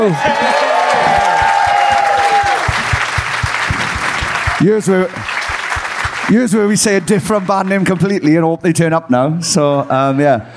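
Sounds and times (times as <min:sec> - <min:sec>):
speech: 0:00.0 - 0:00.6, 0:04.6 - 0:05.4, 0:06.3 - 0:10.5
audience shouting: 0:00.0 - 0:06.4
audience applauding a band at a live show: 0:00.0 - 0:08.4.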